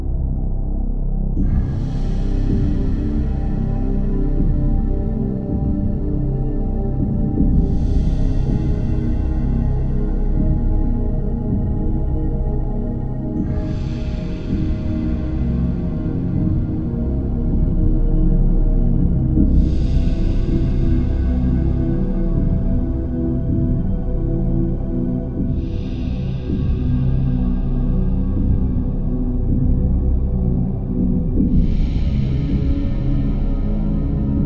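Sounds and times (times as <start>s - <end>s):
ambience theme: 0.0s - 34.4s.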